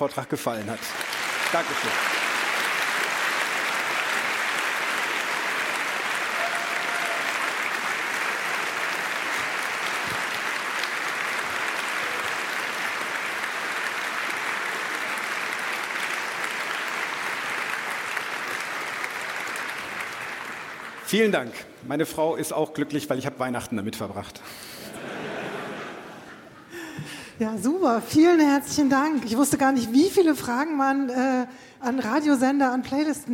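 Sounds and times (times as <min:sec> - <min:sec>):
speech: 0:00.0 - 0:02.2, 0:21.1 - 0:24.8, 0:27.4 - 0:33.3
audience applause: 0:00.5 - 0:21.3
laughter: 0:24.9 - 0:27.1.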